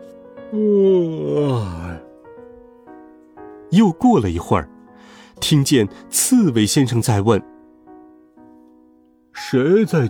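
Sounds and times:
speech: 0:00.5 - 0:01.9, 0:03.8 - 0:04.7, 0:05.4 - 0:07.5, 0:09.5 - 0:10.0
person imitating a long yawn: 0:00.5 - 0:02.1.

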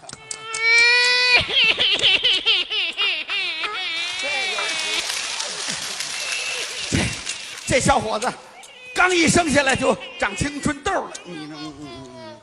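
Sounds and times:
performer imitating a baby crying in a comic sketch: 0:00.1 - 0:01.9, 0:03.5 - 0:05.4, 0:08.2 - 0:12.4
laughter: 0:01.3 - 0:12.3
speech: 0:07.7 - 0:12.0.

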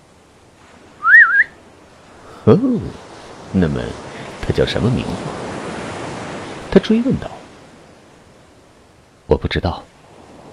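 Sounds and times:
comical whistle through pursed lips: 0:01.0 - 0:01.6
speech: 0:02.5 - 0:05.4, 0:06.8 - 0:07.3, 0:09.4 - 0:09.9.

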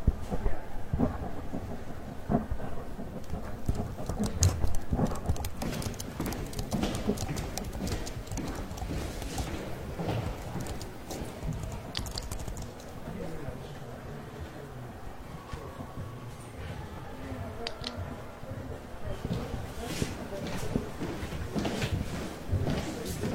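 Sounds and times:
soft library murmur and rustle: 0:00.0 - 0:23.3
sharper knocks: 0:03.6 - 0:12.6
typing: 0:03.6 - 0:13.0.

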